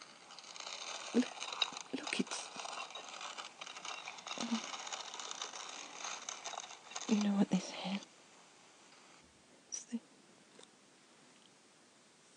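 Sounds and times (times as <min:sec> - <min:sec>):
old door mechanism grinding open: 0:00.0 - 0:07.5
speech: 0:01.1 - 0:01.4.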